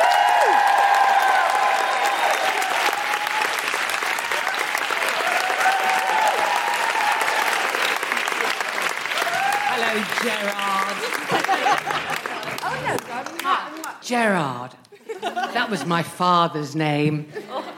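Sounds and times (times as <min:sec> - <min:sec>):
audience cheering and whistling for a comedian at a live show: 0:00.0 - 0:08.4, 0:09.0 - 0:10.0
audience clapping for a comedian at a live show: 0:00.0 - 0:14.0
laughter: 0:10.2 - 0:13.3, 0:14.9 - 0:16.1, 0:17.3 - 0:17.7
speech: 0:14.1 - 0:14.8, 0:15.6 - 0:17.7.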